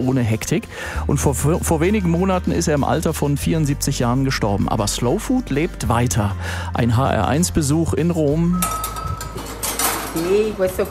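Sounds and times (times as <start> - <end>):
speech: 0.0 - 9.1, 10.1 - 10.8
kitchen utensils clinking and clattering in a restaurant kitchen in Tarquinia: 8.5 - 10.8.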